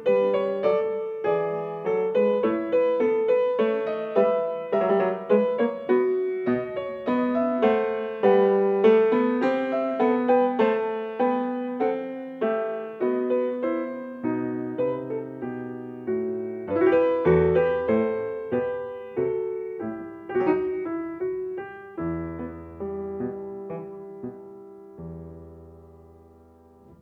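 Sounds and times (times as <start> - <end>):
baroque dance piece: 0.0 - 25.7.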